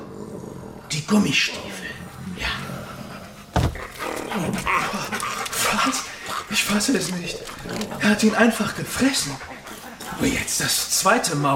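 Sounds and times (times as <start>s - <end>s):
speech: 0.9s - 2.6s, 4.4s - 9.6s, 10.2s - 11.5s
dog panting: 2.8s - 11.5s.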